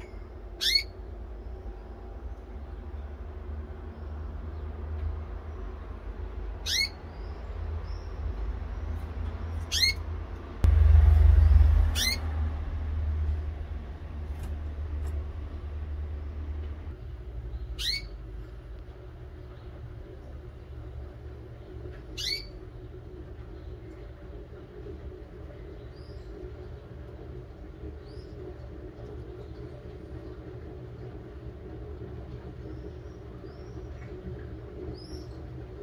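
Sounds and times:
canary call notes: 0:00.0 - 0:01.0, 0:06.5 - 0:10.2, 0:11.8 - 0:12.3, 0:17.5 - 0:18.3, 0:22.1 - 0:22.6
constant low hum: 0:00.0 - 0:35.8.

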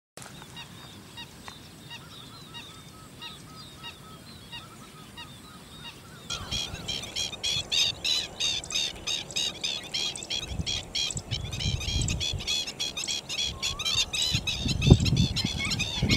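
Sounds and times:
flock of stilts calling: 0:06.3 - 0:16.1.

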